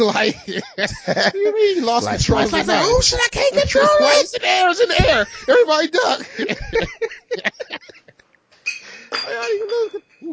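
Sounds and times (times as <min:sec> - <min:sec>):
speech: 0:00.0 - 0:08.0, 0:09.2 - 0:10.3
laughter: 0:00.0 - 0:08.2
wine glass clinking, nearly knocked over: 0:08.6 - 0:10.3.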